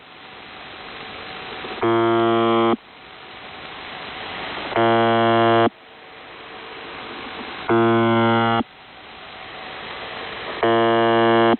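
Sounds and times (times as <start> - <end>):
buzzer: 1.8 - 2.8, 4.8 - 5.7, 7.7 - 8.6, 10.6 - 11.5.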